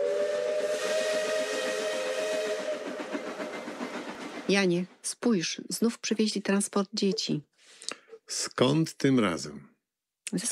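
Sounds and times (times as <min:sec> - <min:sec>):
steam train whistle: 0:00.0 - 0:04.0
hissing steam: 0:00.0 - 0:04.5
steam train wheels clattering: 0:01.1 - 0:05.2
speech: 0:04.5 - 0:07.5, 0:08.3 - 0:09.7, 0:10.3 - 0:10.5.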